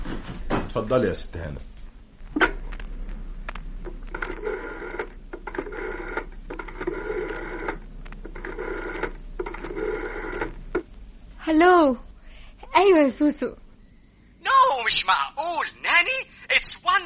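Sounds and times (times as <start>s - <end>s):
low hum: 0.0s - 17.0s
speech: 0.7s - 1.7s, 12.8s - 13.6s
telephone being dialed: 4.1s - 10.5s.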